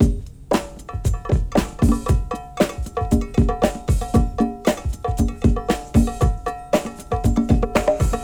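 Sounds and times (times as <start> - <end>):
conga drum: 0.0 - 8.2.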